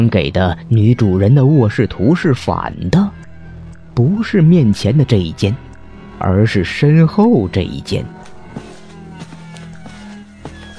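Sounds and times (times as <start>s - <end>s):
speech: 0.0s - 3.1s, 4.0s - 8.2s
slipper footsteps approaching: 8.1s - 10.7s.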